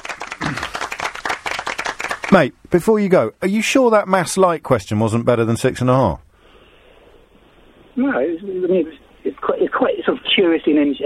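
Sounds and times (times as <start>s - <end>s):
audience applause: 0.0s - 2.5s
speech: 2.3s - 6.3s, 8.0s - 11.0s.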